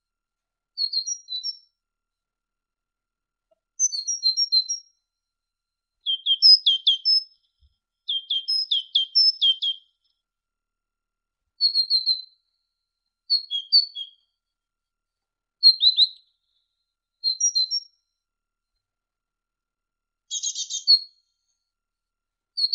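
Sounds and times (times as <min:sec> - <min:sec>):
great tit singing: 0:00.8 - 0:01.6, 0:03.8 - 0:05.0, 0:06.0 - 0:10.2, 0:11.6 - 0:12.4, 0:13.3 - 0:14.4, 0:15.6 - 0:16.6, 0:17.2 - 0:17.9, 0:20.3 - 0:21.5, 0:22.6 - 0:22.7.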